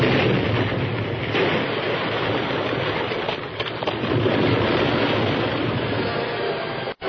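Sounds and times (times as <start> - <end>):
explosion blast roar: 0.0 - 7.0.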